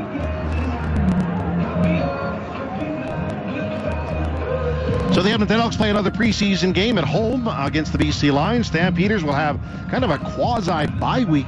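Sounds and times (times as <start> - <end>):
stadium crowd booing: 0.0 - 6.3
speech: 5.2 - 11.4.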